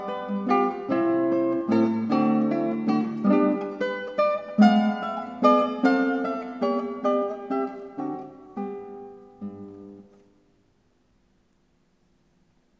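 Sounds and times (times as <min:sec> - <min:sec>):
prelude in G major: 0:00.0 - 0:10.0.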